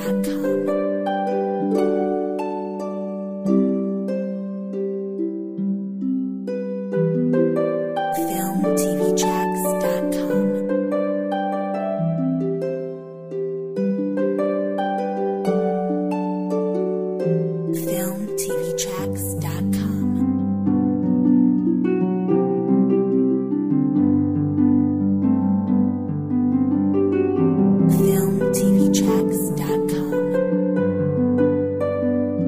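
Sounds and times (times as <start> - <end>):
peaceful harp playing: 0.0 - 32.4.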